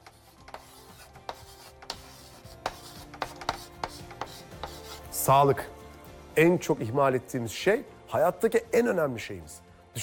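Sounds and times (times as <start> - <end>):
pen scratching on paper writing a note: 0.0 - 5.1
speech: 5.3 - 5.8, 6.4 - 9.6.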